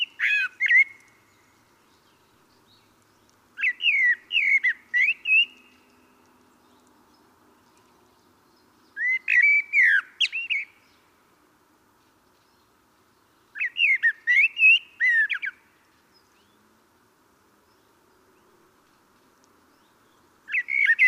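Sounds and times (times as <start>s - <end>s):
common blackbird Turdus merula singing: 0.0s - 11.1s, 12.4s - 16.6s, 19.7s - 21.0s.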